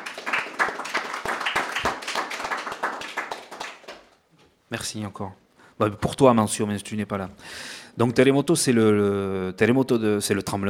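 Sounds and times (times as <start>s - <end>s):
audience applause: 0.0s - 4.2s
speech: 4.7s - 10.6s.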